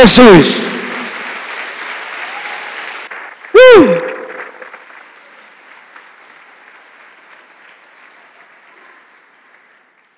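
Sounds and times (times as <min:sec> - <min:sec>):
audience applauding: 0:00.0 - 0:10.1.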